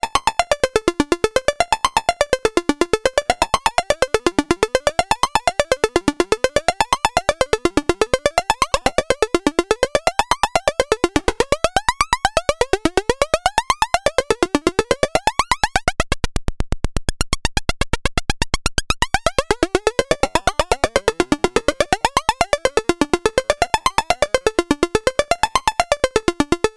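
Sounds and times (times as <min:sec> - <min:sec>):
percussive oscillator sync synth sounds: 0:00.2 - 0:26.7.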